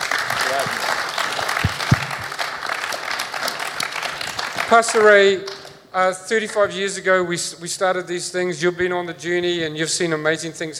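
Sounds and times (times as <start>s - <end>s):
audience applause: 0.0s - 5.7s
speech: 4.7s - 10.7s.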